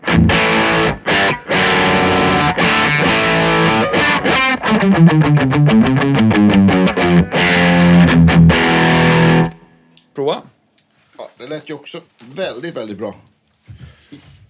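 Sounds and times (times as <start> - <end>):
electric guitar through distortion pedal: 0.0 - 9.6
speech: 11.6 - 14.3.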